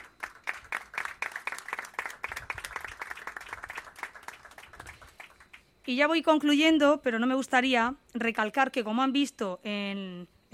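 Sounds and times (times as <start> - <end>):
audience applause: 0.0 - 5.6
speech: 5.9 - 10.5.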